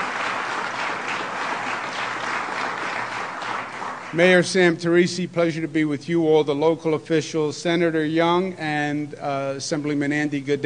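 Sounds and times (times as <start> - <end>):
audience applause: 0.0 - 4.5
speech: 4.1 - 10.6.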